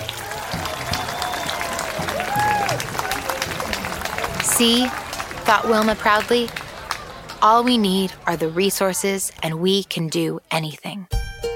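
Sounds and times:
crowd cheering and clapping: 0.0 - 8.7
excited shouts: 0.1 - 3.6
speech: 4.6 - 6.6, 7.4 - 11.2.

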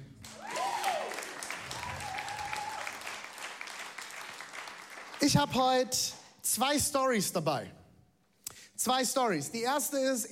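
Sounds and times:
applause: 0.0 - 5.9
speech: 5.2 - 7.8, 8.8 - 10.3.

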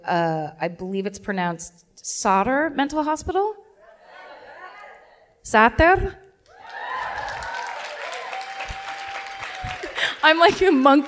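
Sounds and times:
speech: 0.0 - 3.6, 5.5 - 6.2, 10.2 - 11.0
audience clapping at live show: 6.4 - 11.0.

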